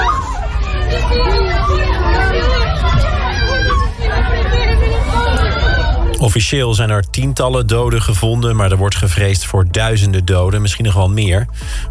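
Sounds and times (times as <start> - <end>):
panicked crowd in street after earthquake: 0.0 - 8.0
speech: 6.2 - 11.9.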